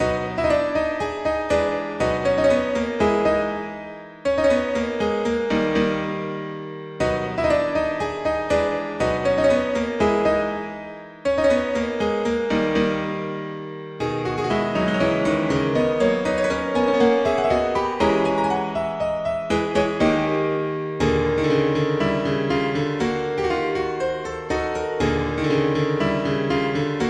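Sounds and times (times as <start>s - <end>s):
classical music prelude: 0.0s - 27.0s.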